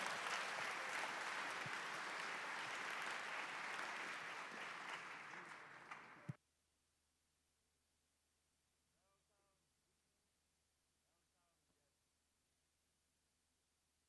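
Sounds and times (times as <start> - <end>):
audience applause: 0.0 - 6.4.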